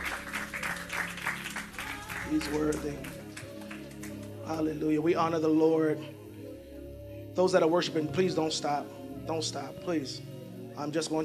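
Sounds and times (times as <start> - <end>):
audience clapping hands: 0.0 - 4.5
speech: 2.3 - 3.2, 4.5 - 6.2, 7.4 - 11.2.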